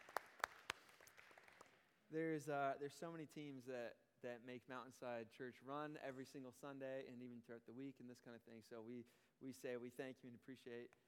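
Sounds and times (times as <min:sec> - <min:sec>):
audience applause: 0:00.0 - 0:01.7
speech: 0:02.1 - 0:11.0.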